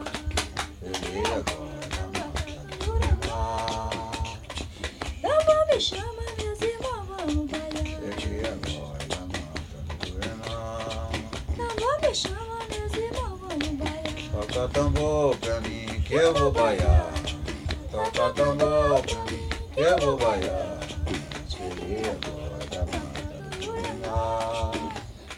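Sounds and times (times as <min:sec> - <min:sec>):
drum playing: 0:00.1 - 0:25.1.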